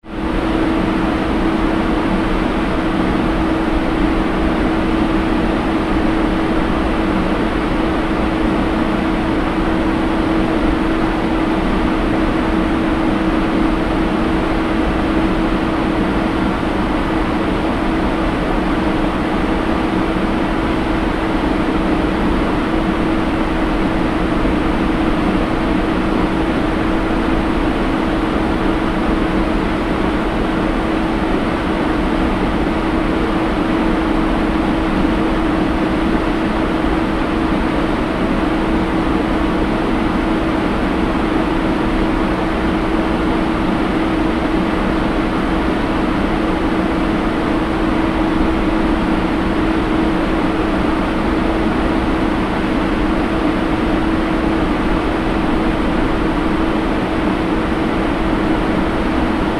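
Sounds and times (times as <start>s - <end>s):
cruise ship engine room ambience: 0.0s - 59.5s.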